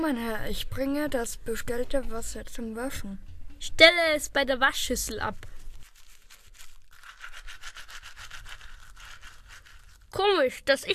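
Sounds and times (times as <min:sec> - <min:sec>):
speech: 0:00.0 - 0:05.6, 0:10.1 - 0:10.9
teeth brushing with tooth powder: 0:05.5 - 0:10.3.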